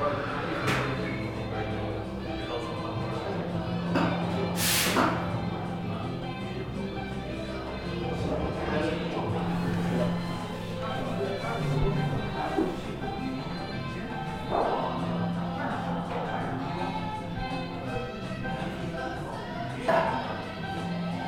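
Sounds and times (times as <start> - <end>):
murmur of overlapping voices in a café beside Ditan in Beijing: 0.0 - 21.2
bright hiss: 4.6 - 5.1.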